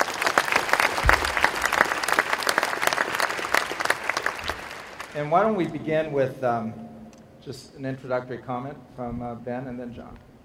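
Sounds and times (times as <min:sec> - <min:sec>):
audience applause: 0:00.0 - 0:05.7
speech: 0:05.2 - 0:06.8, 0:07.4 - 0:10.3.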